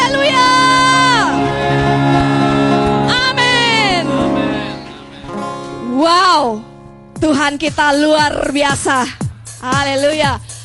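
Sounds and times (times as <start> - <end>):
audience cheering: 0.0 - 5.1
speech: 7.5 - 10.5.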